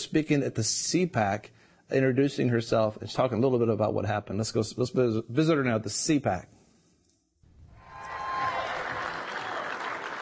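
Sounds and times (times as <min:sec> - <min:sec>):
speech: 0:00.0 - 0:06.6
crowd at CPAC applauding to welcome Betsy DeVos: 0:07.7 - 0:10.1.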